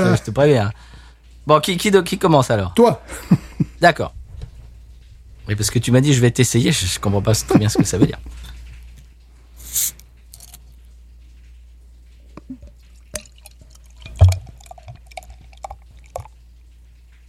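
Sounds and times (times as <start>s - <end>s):
speech: 0.2s - 4.2s, 5.5s - 8.5s
laughter: 7.3s - 8.3s
beer poured into a glass and foaming: 12.3s - 16.5s.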